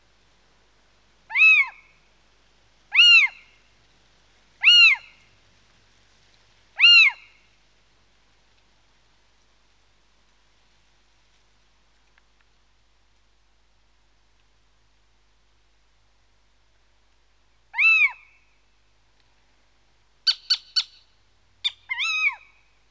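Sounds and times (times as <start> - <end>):
little owl calling: 1.3 - 2.0, 2.9 - 3.7, 4.6 - 5.3, 6.8 - 7.5, 17.7 - 18.6, 20.2 - 22.8.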